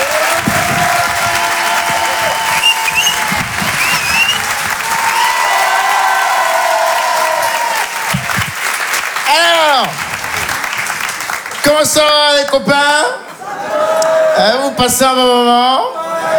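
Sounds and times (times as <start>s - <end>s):
audience applause: 0.0s - 12.6s
speech: 11.8s - 13.2s, 14.4s - 16.3s.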